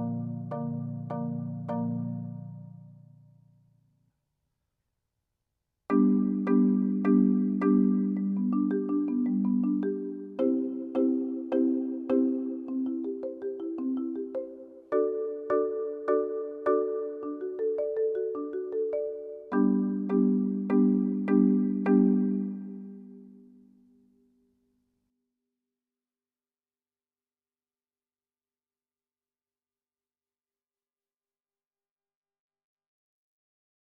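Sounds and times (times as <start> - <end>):
four-mallet exercises: 0.0 - 2.9, 5.9 - 23.4.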